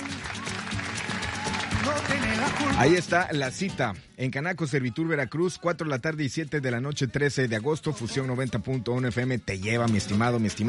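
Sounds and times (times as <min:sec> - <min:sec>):
cheering and applause for radio contest winners: 0:00.0 - 0:03.3
speech: 0:01.9 - 0:10.6.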